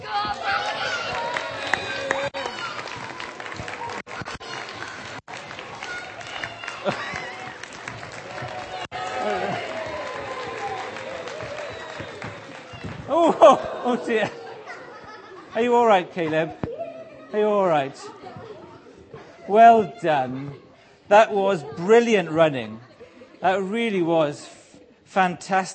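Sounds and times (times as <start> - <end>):
children cheering during a running race: 0.0 - 15.4
laughter: 6.7 - 7.7, 13.1 - 17.3, 18.0 - 23.7
speech: 13.5 - 14.4, 15.6 - 16.6, 17.3 - 18.2, 19.5 - 22.8, 23.4 - 25.7.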